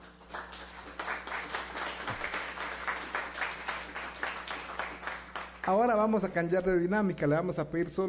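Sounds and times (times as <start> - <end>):
applause: 0.0 - 6.3
speech: 5.7 - 8.0.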